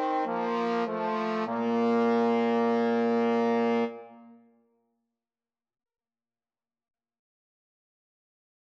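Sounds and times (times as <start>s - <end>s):
trombone duet: 0.0s - 4.2s.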